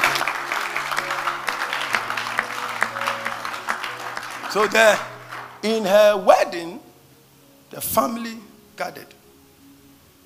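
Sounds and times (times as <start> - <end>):
crowd clapping: 0.0 - 6.0
speech: 4.5 - 6.9, 7.7 - 9.2.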